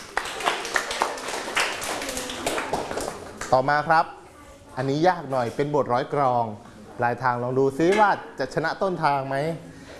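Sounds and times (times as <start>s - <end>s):
audience clapping: 0.0s - 3.6s
speech: 3.5s - 4.2s, 4.8s - 9.8s.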